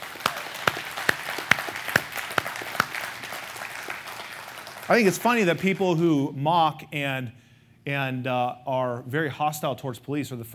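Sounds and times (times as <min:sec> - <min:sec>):
audience applause: 0:00.0 - 0:05.9
speech: 0:04.9 - 0:10.5.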